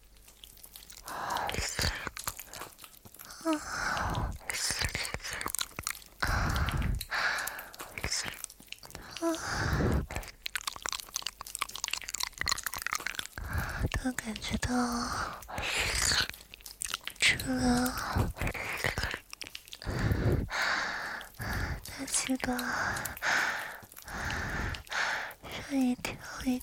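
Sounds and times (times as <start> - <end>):
person crunching and chewing food: 0.0 - 26.6
soft whispering: 0.9 - 26.6
speech: 14.3 - 15.4, 22.4 - 23.2, 25.7 - 26.6.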